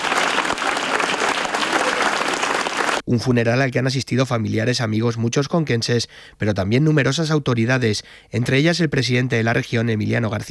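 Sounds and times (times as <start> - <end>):
mourners applauding as a coffin arrives at a church: 0.0 - 3.1
speech: 3.1 - 10.4.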